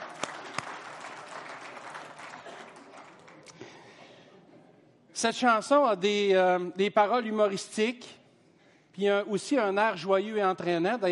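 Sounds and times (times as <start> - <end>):
crowd applauding: 0.0 - 3.9
speech: 5.2 - 8.2, 9.0 - 11.1.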